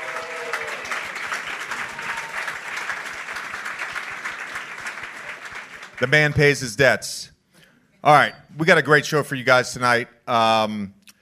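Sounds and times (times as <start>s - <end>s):
audience applause at a live show in New York: 0.0s - 6.6s
speech: 6.0s - 7.3s, 8.0s - 11.0s.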